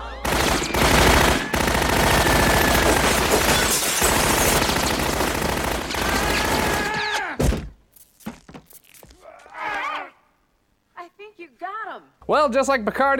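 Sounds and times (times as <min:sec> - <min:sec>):
Tommy gun fire in a 1920s nightclub scene on the Star Trek holodeck: 0:00.2 - 0:07.0
speech: 0:12.3 - 0:13.1.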